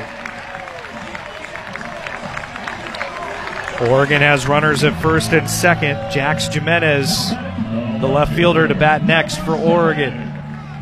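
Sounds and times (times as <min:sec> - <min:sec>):
baseball crowd noise: 0:00.0 - 0:10.8
speech: 0:03.8 - 0:10.2.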